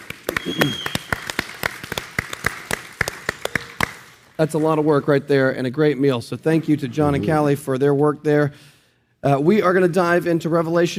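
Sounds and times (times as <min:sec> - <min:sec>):
small audience clapping: 0:00.0 - 0:04.9
speech: 0:00.3 - 0:01.0, 0:04.4 - 0:10.9.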